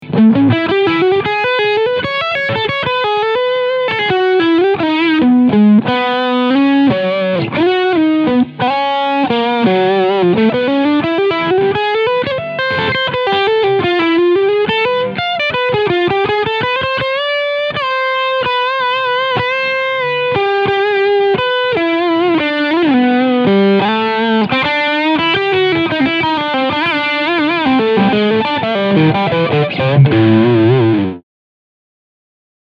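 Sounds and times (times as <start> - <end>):
Squier Telecaster lead sound on steg pickup: 0.0 - 31.2.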